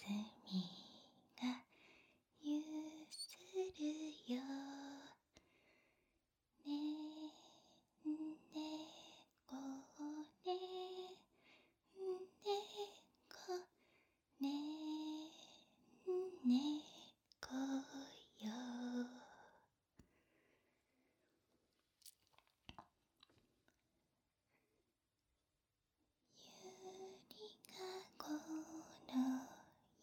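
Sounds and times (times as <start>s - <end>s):
lullaby: 0.0s - 5.3s, 6.6s - 19.6s, 26.3s - 30.0s.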